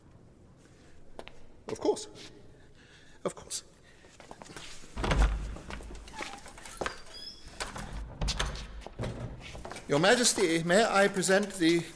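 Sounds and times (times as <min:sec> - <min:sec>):
speech: 0:01.7 - 0:02.4, 0:03.2 - 0:03.7, 0:09.9 - 0:11.9
door being opened: 0:05.0 - 0:10.0.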